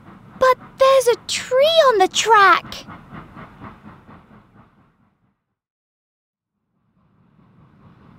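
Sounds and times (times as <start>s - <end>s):
train leaving the station clickety-clack: 0.0s - 5.4s, 6.9s - 8.1s
speech: 1.0s - 2.9s.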